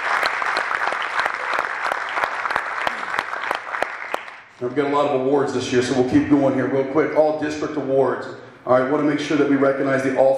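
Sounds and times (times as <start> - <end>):
audience applause: 0.0 - 4.5
speech: 4.6 - 10.3.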